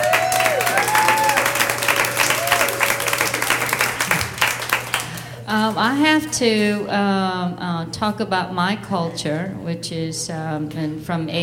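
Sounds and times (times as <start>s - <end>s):
audience applause: 0.0s - 5.4s
speech: 5.8s - 11.4s.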